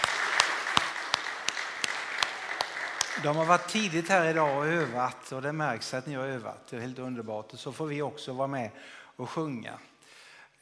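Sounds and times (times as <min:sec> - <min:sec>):
applause for the choir: 0:00.0 - 0:05.3
speech: 0:03.2 - 0:09.9.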